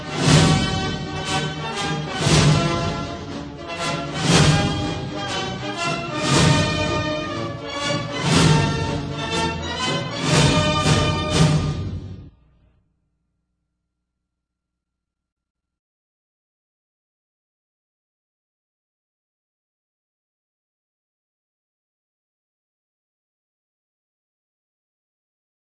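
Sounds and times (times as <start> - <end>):
march music: 0.0 - 12.6.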